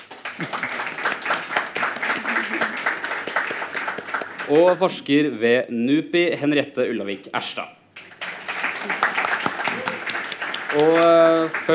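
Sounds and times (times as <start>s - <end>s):
room full of people applauding: 0.0s - 4.8s, 8.1s - 11.7s
speech: 4.5s - 7.8s, 10.8s - 11.7s.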